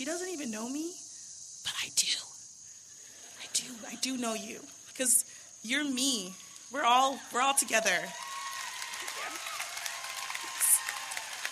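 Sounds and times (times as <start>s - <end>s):
speech: 0.0s - 1.0s, 1.6s - 2.3s, 3.6s - 8.3s
audience applause: 7.8s - 11.5s.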